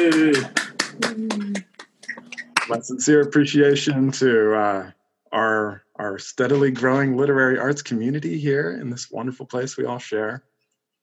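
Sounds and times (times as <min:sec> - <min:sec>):
video call participants clapping: 0:00.0 - 0:02.8
speech: 0:02.7 - 0:10.5.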